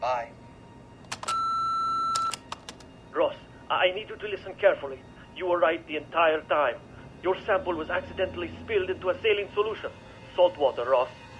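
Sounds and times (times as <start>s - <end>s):
answering machine beep: 1.1s - 2.5s
mechanical clicks: 2.1s - 2.9s
speech: 3.8s - 11.2s.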